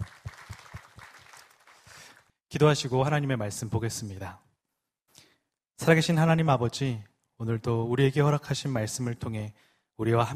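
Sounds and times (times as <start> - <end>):
audience applause: 0.0 - 2.3
speech: 2.5 - 4.5, 5.8 - 10.3.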